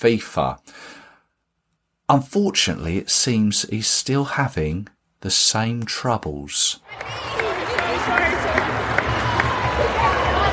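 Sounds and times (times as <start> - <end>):
speech: 0.0 - 1.0, 2.1 - 10.4
football stadium crowd noise at the England Nigeria game: 6.8 - 10.5.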